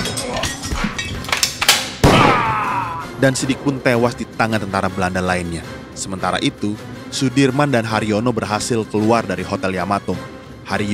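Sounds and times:
gunshot: 1.8s - 4.0s
speech: 3.2s - 10.9s.

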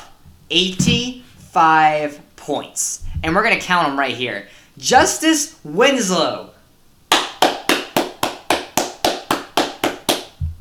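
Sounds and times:
speech: 0.5s - 6.5s
clapping: 7.1s - 10.4s.

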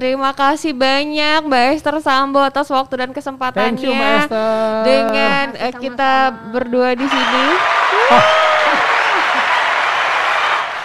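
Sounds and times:
speech: 0.0s - 8.4s
laughter: 3.6s - 5.7s, 7.0s - 9.9s
applause: 7.0s - 10.8s.

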